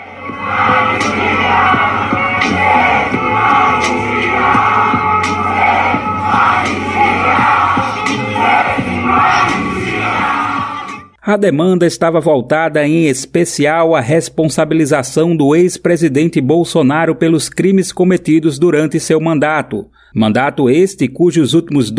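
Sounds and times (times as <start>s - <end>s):
people shouting: 0.0s - 11.0s
protest crowd chanting slogan: 0.0s - 11.1s
speech: 11.3s - 21.9s.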